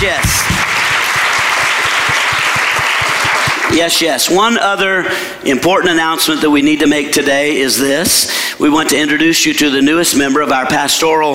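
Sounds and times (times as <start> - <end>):
speech: 0.0 - 0.4, 3.7 - 11.3
church congregation applauding firefighters: 0.0 - 4.1.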